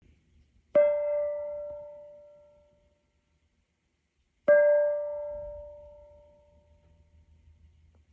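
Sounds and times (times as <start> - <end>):
gong: 0.8 - 3.0, 4.5 - 7.4.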